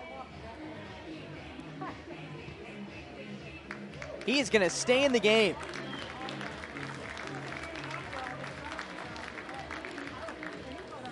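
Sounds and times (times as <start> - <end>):
stadium crowd applauding: 3.7 - 11.1
speech: 4.2 - 5.8.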